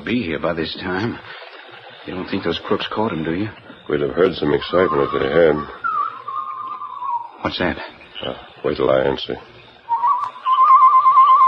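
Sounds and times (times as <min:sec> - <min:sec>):
speech: 0:00.1 - 0:01.4, 0:02.0 - 0:05.8, 0:07.4 - 0:09.5
whistled bird-call signal: 0:04.2 - 0:08.7, 0:09.6 - 0:11.4.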